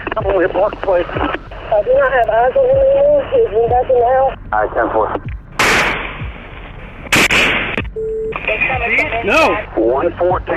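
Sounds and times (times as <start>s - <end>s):
short steady radio tone: 0.0s - 5.2s, 8.2s - 10.5s
speech: 0.2s - 5.3s, 8.7s - 10.5s
gunshots at a house during a police response: 5.6s - 6.2s, 7.1s - 7.8s.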